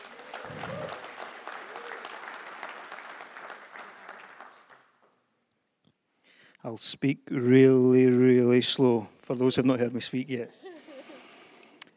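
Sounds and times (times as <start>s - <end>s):
audience cheering: 0.0s - 4.4s
speech: 6.6s - 10.7s.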